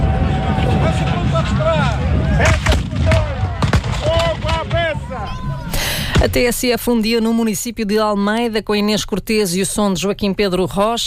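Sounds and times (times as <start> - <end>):
murmur of crowd voices: 0.0 - 6.3
cannon firing at a siege reenactment: 2.4 - 5.1
speech: 6.3 - 11.0.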